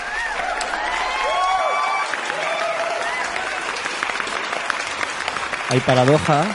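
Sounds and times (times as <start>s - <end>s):
cheering voices and whoops: 0.0s - 4.5s
canned audience applause from YouTube: 0.0s - 6.5s
speech: 5.7s - 6.5s.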